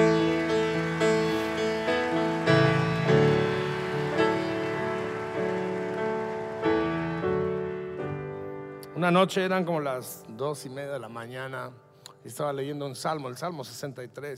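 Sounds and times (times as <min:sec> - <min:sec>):
audience applauding: 0:00.0 - 0:08.4
speech: 0:09.0 - 0:14.3.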